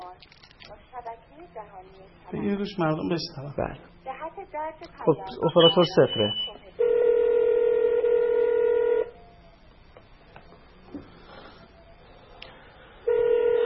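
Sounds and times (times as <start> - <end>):
speech: 1.0 - 6.6
telephone dialing beeps: 5.3 - 9.0
telephone dial tone: 6.8 - 9.1, 13.1 - 13.6.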